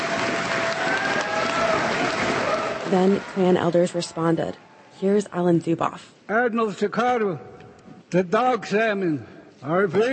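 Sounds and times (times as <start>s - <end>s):
crowd applauding in a school gym after an apology ceremony: 0.0s - 4.2s
speech: 2.9s - 10.1s.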